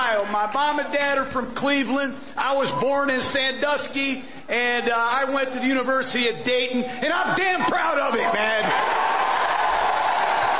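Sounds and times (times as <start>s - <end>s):
speech: 0.1s - 9.0s
audience applause at a speech: 8.4s - 10.5s.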